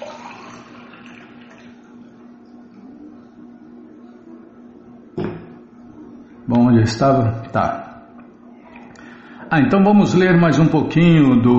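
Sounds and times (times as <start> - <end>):
water pouring: 0.0 - 2.0
speech: 6.5 - 7.9, 9.5 - 11.5.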